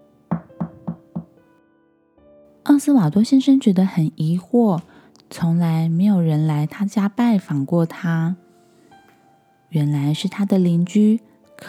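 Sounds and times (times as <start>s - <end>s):
knocking on a door: 0.3s - 1.4s
speech: 2.6s - 8.4s, 9.7s - 11.6s.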